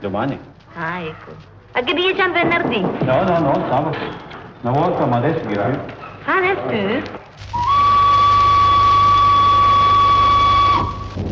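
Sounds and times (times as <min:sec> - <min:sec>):
speech: 0:00.0 - 0:07.6
shrill whistle: 0:07.5 - 0:11.2.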